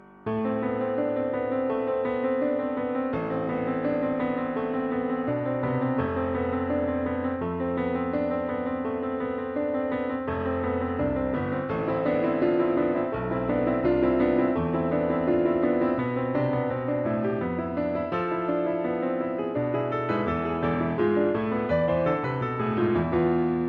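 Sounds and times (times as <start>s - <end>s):
piano: 0.0s - 23.6s.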